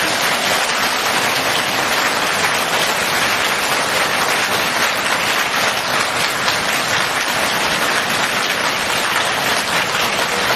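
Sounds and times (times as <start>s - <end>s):
audience applause: 0.0s - 10.5s.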